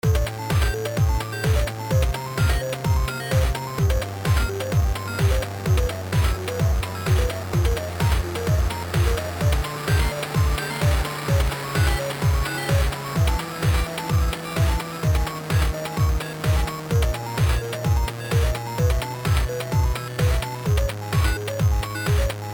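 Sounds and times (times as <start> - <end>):
ringtone: 0.0 - 22.5.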